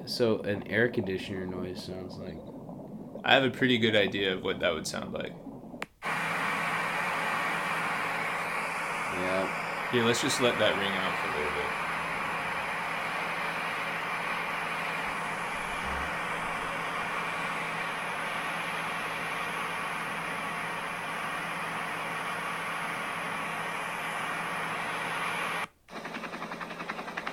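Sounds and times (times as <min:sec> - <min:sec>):
speech: 0:00.0 - 0:02.6, 0:03.2 - 0:06.2, 0:09.2 - 0:11.8
helicopter: 0:06.0 - 0:27.3.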